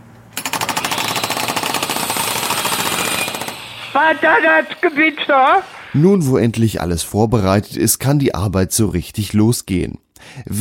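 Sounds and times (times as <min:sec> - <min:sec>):
jackhammer breaking through a wall: 0:00.4 - 0:04.0
speech: 0:04.0 - 0:10.5.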